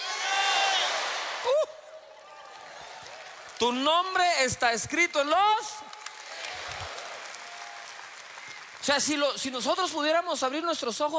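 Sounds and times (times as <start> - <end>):
crowd shouting names: 0.0 - 1.5
speech: 3.6 - 6.0, 8.8 - 11.1.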